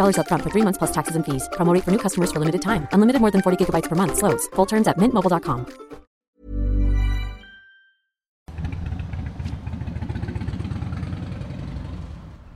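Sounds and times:
speech: 0:00.0 - 0:05.9
Harley-Davidson motorcycle engine rumbling: 0:08.5 - 0:12.5.

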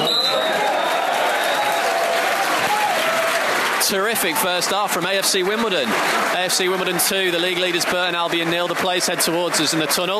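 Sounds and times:
whistles: 0:00.0 - 0:01.9
football stadium crowd cheering and applauding: 0:00.0 - 0:10.1
speech: 0:03.9 - 0:10.1.

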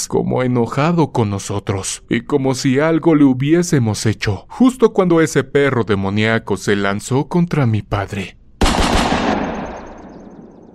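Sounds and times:
speech: 0:00.0 - 0:08.4
gunshots fired: 0:08.6 - 0:10.5.

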